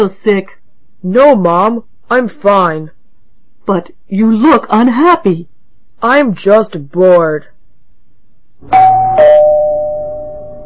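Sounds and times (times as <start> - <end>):
speech: 0.0 - 3.0, 3.7 - 7.5, 8.6 - 9.4
doorbell ringing: 8.7 - 10.6.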